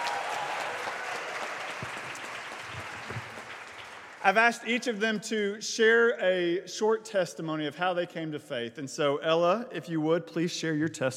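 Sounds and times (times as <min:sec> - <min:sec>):
church congregation applauding to welcome a speaker: 0:00.0 - 0:05.0
speech: 0:04.2 - 0:11.1.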